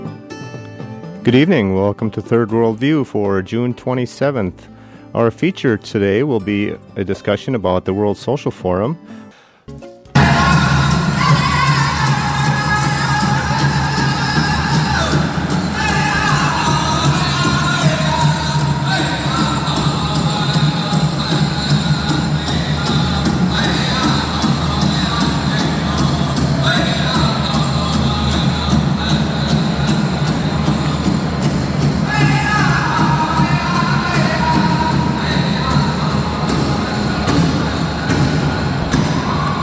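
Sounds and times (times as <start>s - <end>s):
speech: 1.3s - 9.9s
crowd voices at a Native American workshop at the U.S. Social Forum: 10.2s - 39.6s.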